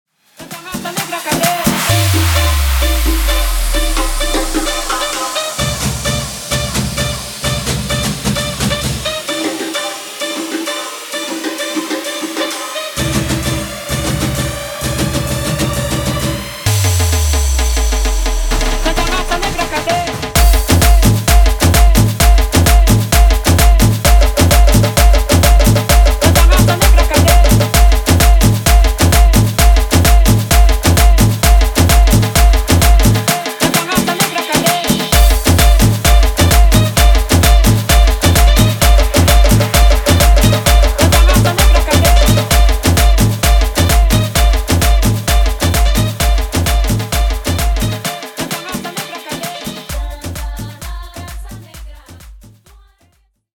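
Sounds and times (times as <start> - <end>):
tribal remix music at 130 bpm: 0.1 - 53.0.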